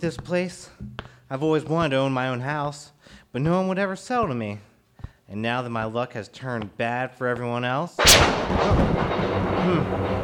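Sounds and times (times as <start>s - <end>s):
speech: 0.0s - 4.7s, 5.3s - 10.2s
thunder of a brewing storm: 8.0s - 10.2s.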